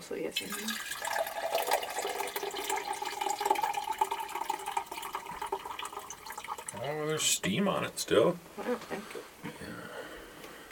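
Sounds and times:
speech: 0.1s - 1.2s, 6.8s - 10.0s
water being poured: 0.4s - 6.9s.

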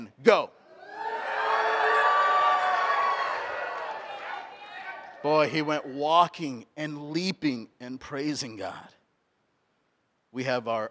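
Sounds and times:
speech: 0.2s - 0.6s, 5.2s - 9.0s, 10.3s - 10.8s
church audience cheering: 0.8s - 6.0s.

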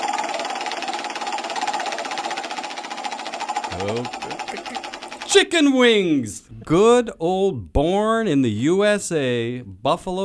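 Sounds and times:
spinning prize wheel clicking: 0.0s - 6.0s
speech: 3.7s - 10.2s.

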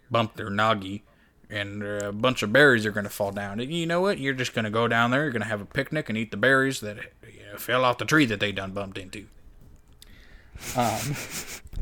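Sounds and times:
speech: 0.1s - 9.4s, 10.6s - 11.8s
person sniffing: 10.1s - 11.7s.

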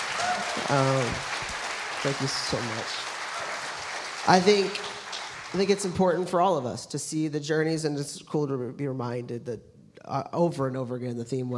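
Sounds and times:
audience applause: 0.0s - 6.4s
speech: 0.7s - 1.3s, 2.0s - 3.1s, 4.2s - 4.9s, 5.5s - 11.5s.

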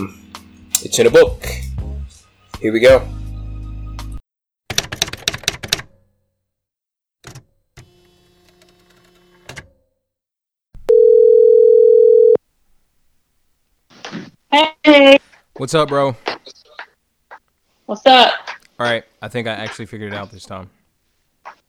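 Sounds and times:
speech: 0.0s - 0.2s, 0.8s - 1.6s, 2.6s - 3.2s, 14.6s - 16.3s, 17.9s - 20.8s
telephone call dial tone: 10.9s - 12.4s.

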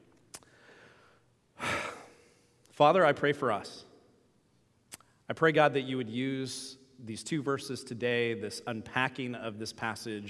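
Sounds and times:
deep breath drawn before praying: 0.4s - 2.6s
speech: 2.8s - 3.9s, 5.3s - 10.2s.

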